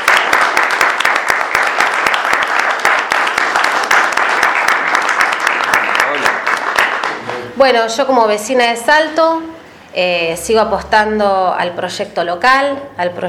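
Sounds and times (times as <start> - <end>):
audience applause: 0.0 - 7.4
speech: 7.6 - 13.2.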